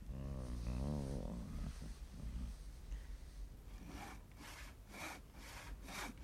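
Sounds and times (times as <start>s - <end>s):
low droning groan: 0.0s - 2.6s
handsaw cutting through a wooden post of a stable building: 3.8s - 6.2s.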